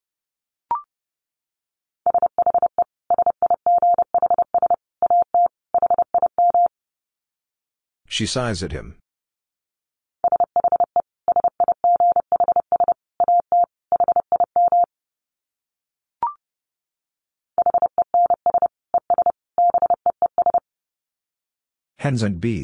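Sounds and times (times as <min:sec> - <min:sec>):
Morse code tones at 30 wpm: 0:02.1 - 0:06.7, 0:10.2 - 0:14.9, 0:17.6 - 0:20.6
speech: 0:08.2 - 0:09.0, 0:22.0 - 0:22.6.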